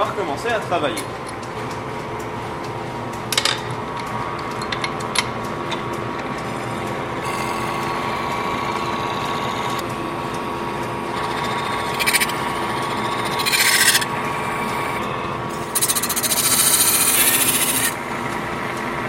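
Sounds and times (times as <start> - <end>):
speech: 0.2 - 1.8
metal spinning lathe running: 1.8 - 19.0.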